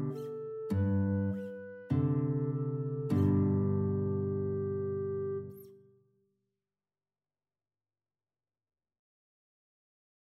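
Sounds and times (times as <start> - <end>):
guitar and clarinet duet: 0.0 - 5.8.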